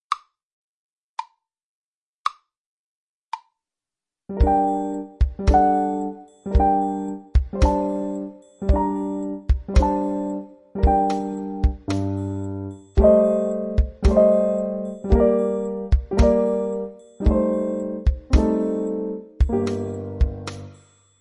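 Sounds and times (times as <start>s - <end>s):
winter night musical accompaniment: 4.3s - 20.9s.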